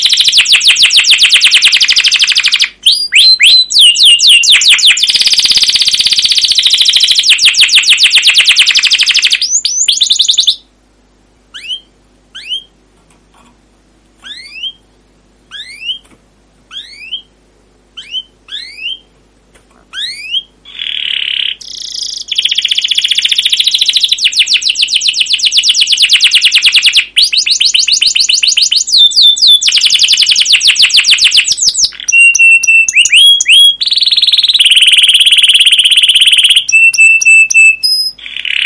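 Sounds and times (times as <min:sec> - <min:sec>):
canary singing: 0:00.0 - 0:10.8, 0:11.5 - 0:12.8, 0:14.2 - 0:38.6.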